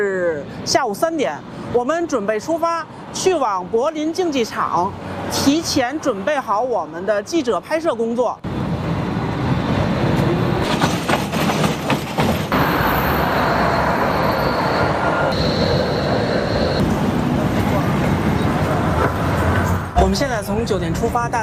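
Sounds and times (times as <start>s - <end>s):
speech: 0.0s - 8.5s, 20.1s - 21.4s
train on the M10 line in Berlin arriving at a station: 8.5s - 20.0s
thin high squeal of rail and wheel: 12.5s - 16.8s.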